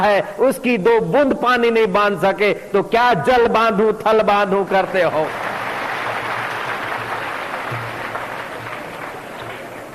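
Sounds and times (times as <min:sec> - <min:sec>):
speech: 0:00.0 - 0:05.5
audience clapping: 0:05.2 - 0:09.9.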